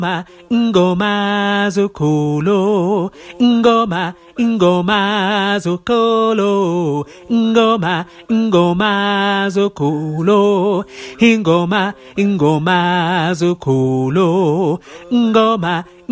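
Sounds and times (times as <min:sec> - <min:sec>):
tenor singing: 0:00.0 - 0:16.1.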